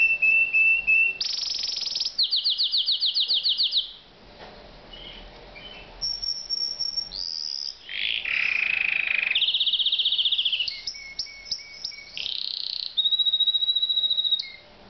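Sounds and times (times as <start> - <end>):
canary song: 0.0 - 4.1, 4.9 - 14.7.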